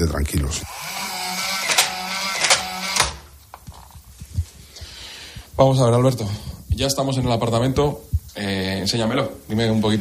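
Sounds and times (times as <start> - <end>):
speech: 0.0 - 1.1, 5.6 - 9.9
electronic door lock whirring and locking: 0.7 - 3.3.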